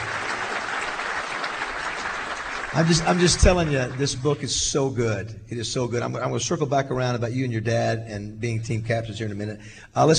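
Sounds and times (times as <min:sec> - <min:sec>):
crowd applauding: 0:00.0 - 0:04.7
speech: 0:02.7 - 0:10.1.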